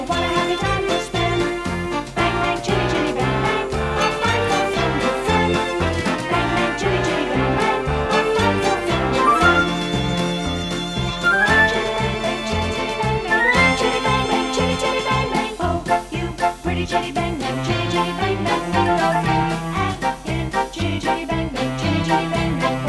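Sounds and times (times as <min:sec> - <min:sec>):
instrumental music with backing: 0:00.0 - 0:22.8.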